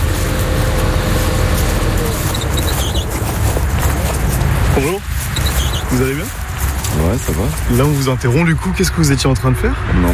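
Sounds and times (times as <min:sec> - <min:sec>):
tractor engine running in a field: 0:00.0 - 0:08.7
speech: 0:04.8 - 0:05.1, 0:06.0 - 0:06.4, 0:07.2 - 0:10.1.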